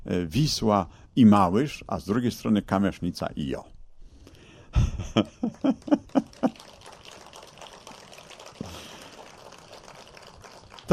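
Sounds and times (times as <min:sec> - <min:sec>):
speech: 0:00.0 - 0:03.7, 0:04.7 - 0:06.6
laughter: 0:04.8 - 0:06.8
audience clapping: 0:05.4 - 0:10.9.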